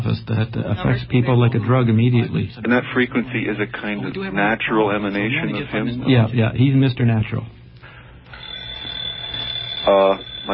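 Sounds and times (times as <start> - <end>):
speech: 0.0 - 7.6, 9.8 - 10.5
alarm clock ringing: 8.3 - 10.5.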